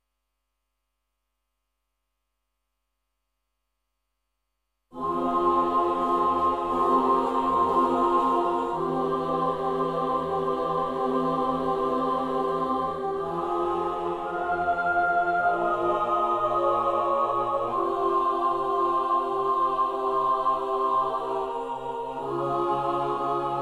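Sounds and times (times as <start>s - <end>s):
choir singing: 5.0s - 23.6s.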